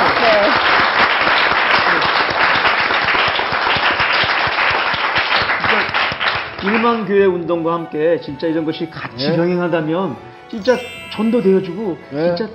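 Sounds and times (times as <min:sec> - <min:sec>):
crowd applauding: 0:00.0 - 0:07.1
speech: 0:06.6 - 0:12.5.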